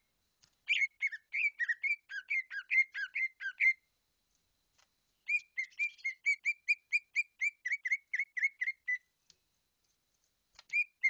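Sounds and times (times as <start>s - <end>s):
bird singing bright whistled notes in rapid bursts: 0.6s - 3.9s, 5.2s - 9.1s, 10.7s - 11.0s.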